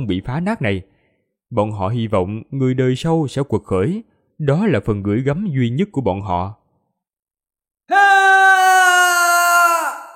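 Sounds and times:
speech: 0:00.0 - 0:00.9, 0:01.5 - 0:06.6
man screaming in anguish: 0:07.9 - 0:10.1.

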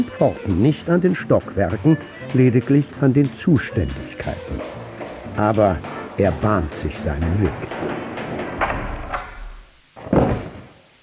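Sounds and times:
speech: 0:00.0 - 0:04.7, 0:05.4 - 0:08.1
light knocks: 0:03.9 - 0:10.4
record slammed down onto a tabletop: 0:08.6 - 0:09.7.

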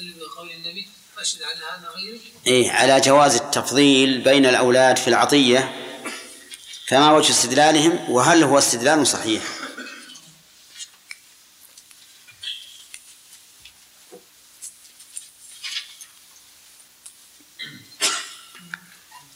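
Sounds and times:
speech: 0:00.4 - 0:05.9, 0:06.9 - 0:09.6
sneeze: 0:17.6 - 0:19.2.

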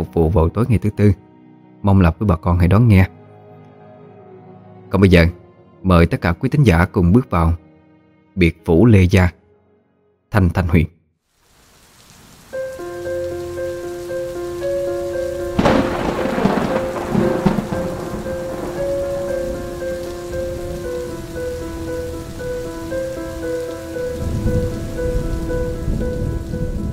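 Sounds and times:
speech: 0:00.2 - 0:03.2, 0:04.9 - 0:07.6, 0:08.4 - 0:09.4, 0:10.3 - 0:11.0
heavy rain: 0:11.3 - 0:26.9
rumbling thunder: 0:13.2 - 0:26.9.

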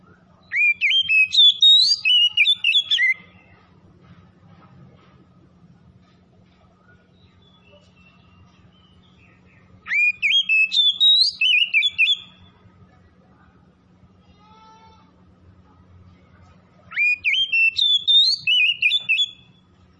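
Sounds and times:
low steady hum: 0:00.0 - 0:19.9
Oriental magpie-robin singing whistled notes: 0:00.4 - 0:03.5, 0:07.2 - 0:12.6, 0:16.9 - 0:19.6.

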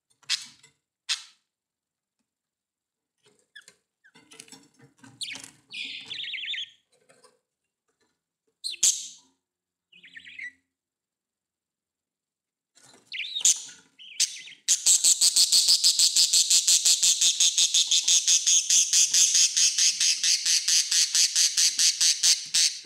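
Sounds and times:
budgerigar chirping: 0:05.2 - 0:06.8, 0:08.6 - 0:09.2, 0:09.9 - 0:10.6, 0:13.1 - 0:22.8.

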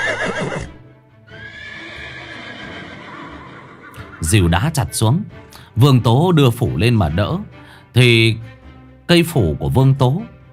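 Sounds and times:
horse neighing: 0:00.0 - 0:04.4
speech: 0:04.2 - 0:10.5.

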